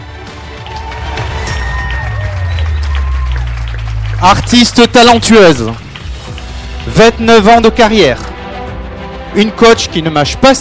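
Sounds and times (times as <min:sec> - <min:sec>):
studio audience applause: 0:00.0 - 0:08.2
audience cheers: 0:00.5 - 0:04.8
speech: 0:04.2 - 0:05.9, 0:06.9 - 0:08.3, 0:09.3 - 0:10.5.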